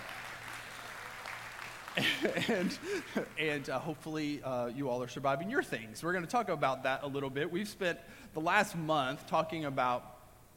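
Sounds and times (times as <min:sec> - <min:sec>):
audience round of applause: 0:00.0 - 0:03.6
laughter: 0:02.0 - 0:03.4
speech: 0:02.0 - 0:10.1.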